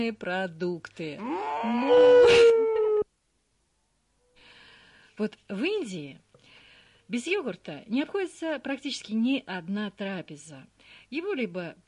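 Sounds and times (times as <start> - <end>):
speech: 0.0 - 2.7, 5.2 - 6.2, 7.1 - 11.8
cow mooing: 1.2 - 2.4.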